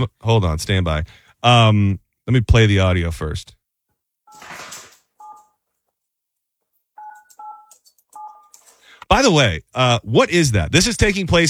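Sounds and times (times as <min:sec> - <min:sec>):
speech: 0:00.0 - 0:03.6, 0:09.1 - 0:11.4
toy phone beeping: 0:04.3 - 0:05.5, 0:07.0 - 0:08.8.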